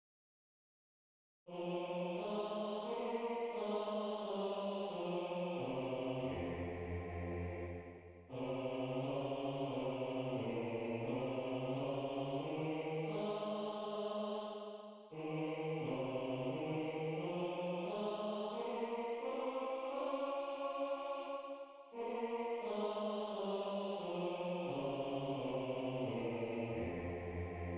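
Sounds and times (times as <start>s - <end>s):
four-part harmony: 1.5s - 27.7s.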